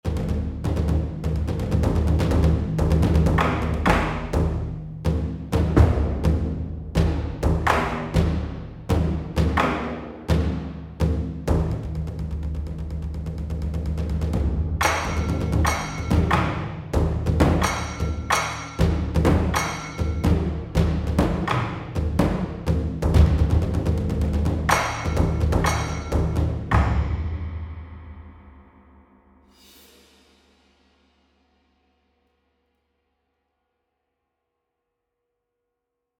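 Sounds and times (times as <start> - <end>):
taiko drums: 0.0 - 28.8.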